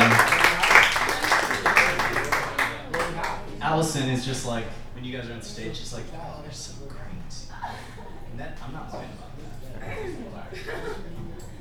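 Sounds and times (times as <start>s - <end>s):
audience applause: 0.0s - 4.6s
laughter: 0.0s - 4.7s, 5.4s - 11.5s
speech: 3.8s - 11.3s.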